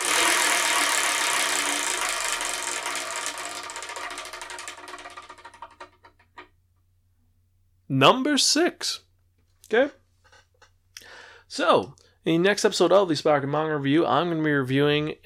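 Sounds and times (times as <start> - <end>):
spinning selection wheel ratcheting clicks: 0.0 - 6.5
speech: 7.9 - 9.0, 9.7 - 10.0, 11.6 - 15.2.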